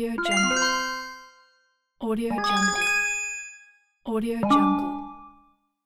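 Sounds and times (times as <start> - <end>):
countdown: 0.2 - 1.5, 2.3 - 3.7, 4.4 - 5.4.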